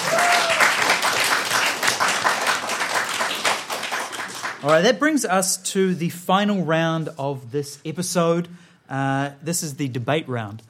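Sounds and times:
audience applause: 0.0 - 4.8
speech: 4.6 - 10.6.

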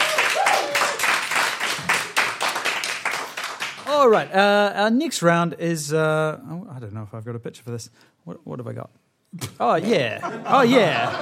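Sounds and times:
audience applause: 0.0 - 4.2
speech: 4.0 - 11.2
laughter: 9.8 - 11.2.

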